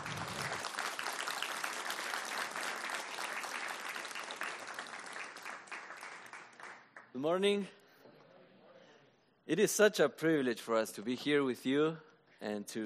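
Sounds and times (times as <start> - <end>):
audience applause welcoming a speaker to the stage: 0.0 - 7.1
speech: 7.2 - 7.8, 9.5 - 12.8.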